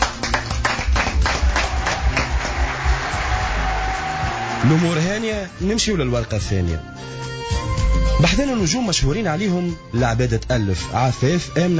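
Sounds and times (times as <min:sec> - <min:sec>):
audience applauding a director at an event: 0:00.0 - 0:05.3
speech: 0:04.6 - 0:07.1, 0:08.2 - 0:11.7.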